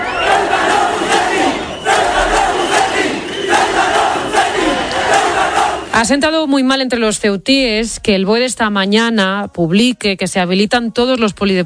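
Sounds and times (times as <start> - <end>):
large crowd of protesters chanting traitor: 0.0 - 6.2
speech: 6.0 - 11.6.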